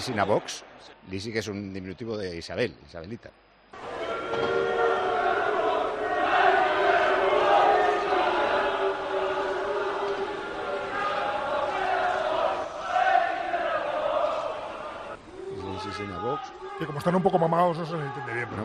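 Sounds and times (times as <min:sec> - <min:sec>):
speech: 0:00.0 - 0:04.8, 0:16.0 - 0:18.6
large crowd booing during minute of silence: 0:03.8 - 0:18.6.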